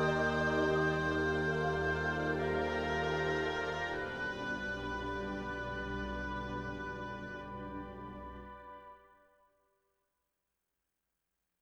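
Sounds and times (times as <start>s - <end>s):
town music: 0.0s - 9.0s.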